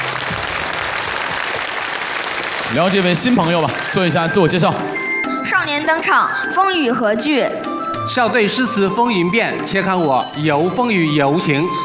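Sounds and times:
studio audience applause at a children's poetry competition show: 0.0s - 4.9s
speech: 2.7s - 11.8s.

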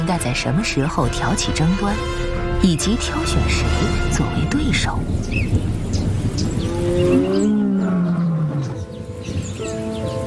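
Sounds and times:
low rumbling background: 0.0s - 9.6s
speech: 0.1s - 5.8s
male lions roaring: 6.5s - 8.9s.

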